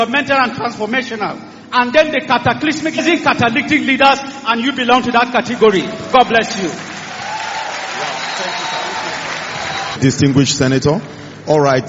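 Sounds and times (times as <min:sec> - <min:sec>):
speech: 0:00.0 - 0:07.0, 0:10.0 - 0:11.8
audience applause at a formal event honouring a senator in Nigeria: 0:06.2 - 0:10.1.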